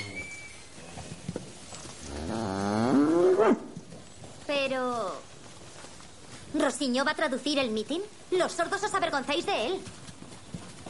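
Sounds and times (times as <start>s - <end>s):
cow mooing: 2.1s - 3.7s
speech: 6.6s - 10.0s.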